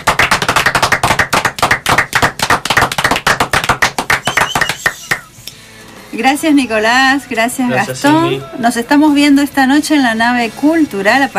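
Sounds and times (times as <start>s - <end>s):
live audience applause: 0.0s - 5.3s
speech: 6.2s - 11.3s.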